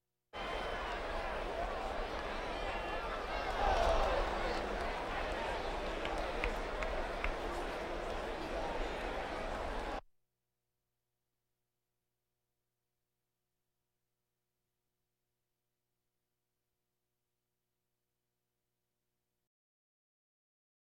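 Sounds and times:
crowds: 0:00.4 - 0:10.0.

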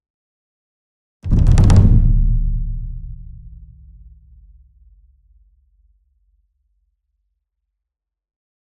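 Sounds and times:
close ensemble taiko drum roll: 0:01.3 - 0:04.6.

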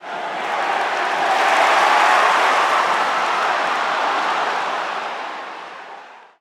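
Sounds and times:
basketball crowd cheering: 0:00.0 - 0:06.4.

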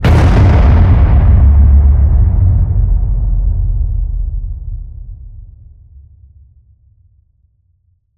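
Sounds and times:
designed cinematic fire hit: 0:00.0 - 0:06.4.

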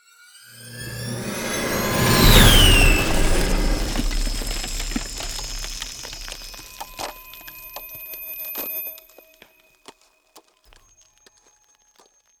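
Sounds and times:
ice spell cold whooshes: 0:00.6 - 0:07.6.

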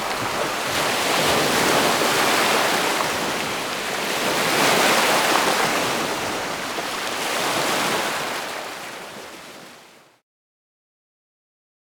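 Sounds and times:
lake water: 0:00.0 - 0:10.2.

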